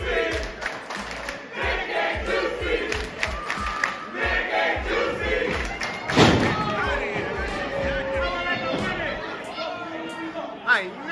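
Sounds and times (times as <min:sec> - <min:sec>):
wrestling crowd chanting: 0:00.0 - 0:11.1.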